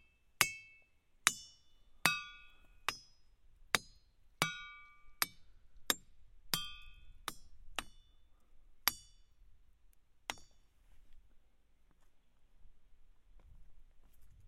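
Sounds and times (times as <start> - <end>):
hammer striking rocks: 1.3 - 8.0, 10.3 - 10.6.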